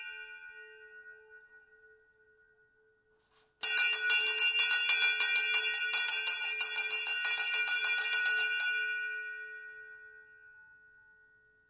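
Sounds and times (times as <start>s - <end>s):
brass ship's hand bell ringing: 3.6s - 11.6s.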